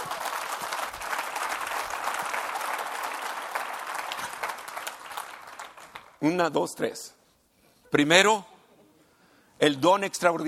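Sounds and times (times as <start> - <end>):
audience applause: 0.0 - 6.2
speech: 6.2 - 7.2, 7.9 - 8.5, 9.6 - 10.4.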